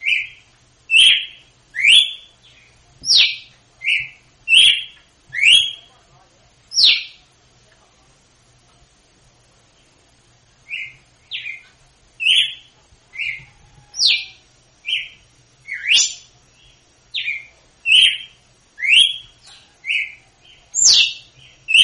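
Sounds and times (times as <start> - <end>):
female red-cowled cardinal singing in Northeast Brazil style: 0.0 - 5.9, 6.7 - 7.2, 10.7 - 11.6, 12.2 - 16.3, 17.1 - 21.8.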